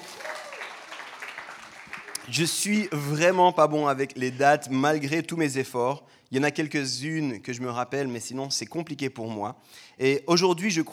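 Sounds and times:
audience applause: 0:00.0 - 0:03.6
speech: 0:02.3 - 0:10.9.

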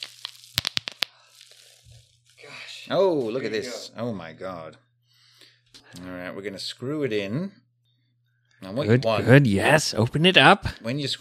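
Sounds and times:
bubbles popping by twisting bubble wrap: 0:00.0 - 0:03.4
speech: 0:02.8 - 0:04.8, 0:05.9 - 0:07.6, 0:08.6 - 0:11.1.

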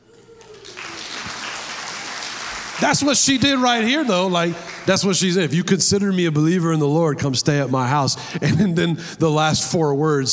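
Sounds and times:
audience clapping: 0:00.1 - 0:05.6
speech: 0:02.8 - 0:10.3.

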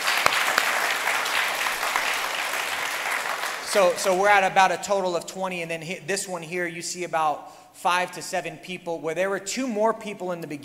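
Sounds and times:
audience praise clapping: 0:00.0 - 0:04.5
speech: 0:03.7 - 0:10.6.

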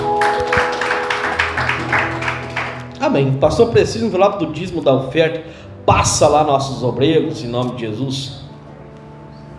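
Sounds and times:
audience applauding: 0:00.0 - 0:03.0
speech: 0:03.1 - 0:08.4.

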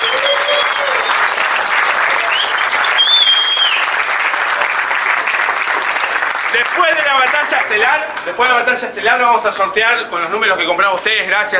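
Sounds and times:
audience clapping at a rap battle event: 0:00.0 - 0:08.8
speech: 0:06.5 - 0:11.5.

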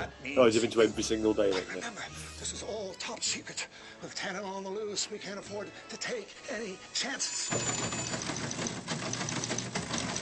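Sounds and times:
speech: 0:00.0 - 0:09.6
dot matrix printer printing: 0:07.5 - 0:10.1.

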